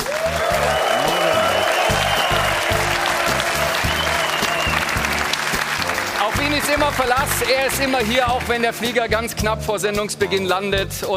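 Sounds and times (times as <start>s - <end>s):
studio audience applause: 0.0s - 8.7s
speech: 6.8s - 11.1s.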